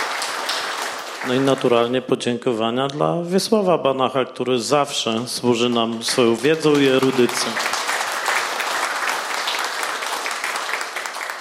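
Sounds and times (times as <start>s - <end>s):
audience applause: 0.0s - 1.9s, 5.6s - 11.4s
speech: 1.2s - 7.8s.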